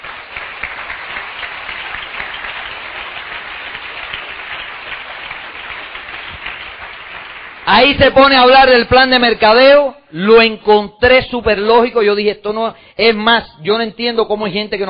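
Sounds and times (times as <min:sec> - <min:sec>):
loud audience applause: 0:00.0 - 0:09.3
speech: 0:07.8 - 0:14.8.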